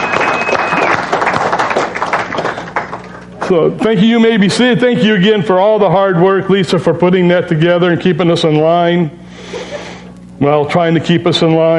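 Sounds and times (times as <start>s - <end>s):
round of applause: 0.0s - 3.6s
speech: 3.5s - 9.8s, 10.4s - 11.7s.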